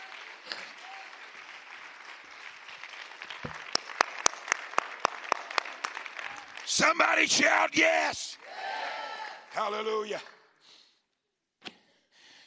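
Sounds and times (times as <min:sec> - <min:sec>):
audience clapping hands together: 0:00.0 - 0:08.7, 0:09.4 - 0:10.6
speech: 0:06.8 - 0:08.4, 0:09.6 - 0:10.3.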